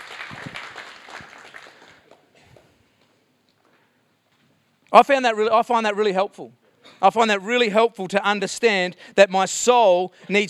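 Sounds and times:
audience applause: 0.0 - 2.3
speech: 4.9 - 10.4.

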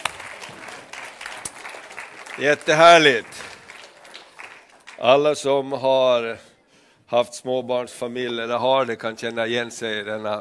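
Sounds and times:
audience applause: 0.0 - 5.3
speech: 2.4 - 3.4, 5.0 - 6.5, 7.1 - 10.3.

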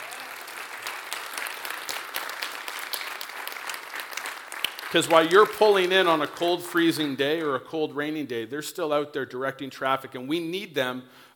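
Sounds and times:
crowd applauding: 0.0 - 7.6
speech: 4.9 - 11.3.

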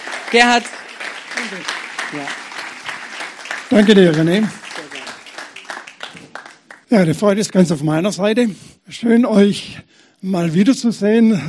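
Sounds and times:
audience applause: 0.0 - 6.9
speech: 0.3 - 0.8, 1.4 - 2.4, 3.7 - 4.6, 6.9 - 11.4.

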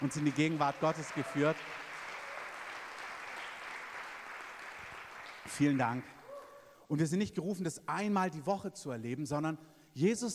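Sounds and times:
speech: 0.0 - 1.9, 5.5 - 6.2, 6.9 - 10.3
audience applause for the worship team: 0.0 - 6.2.

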